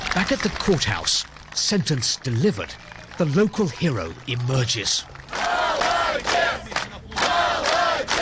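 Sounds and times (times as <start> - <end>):
speech: 0.2 - 5.2
crowd chanting: 5.3 - 8.2.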